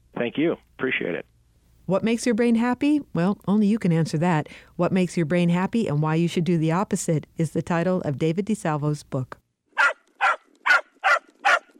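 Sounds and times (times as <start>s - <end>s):
speech: 0.2s - 1.3s, 1.9s - 9.4s
dog barking: 9.8s - 11.7s.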